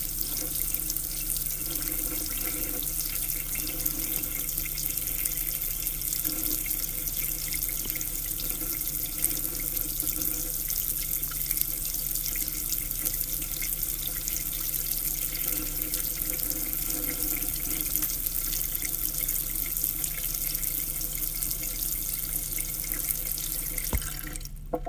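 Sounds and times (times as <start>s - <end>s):
water from a weak faucet: 0.0s - 24.7s.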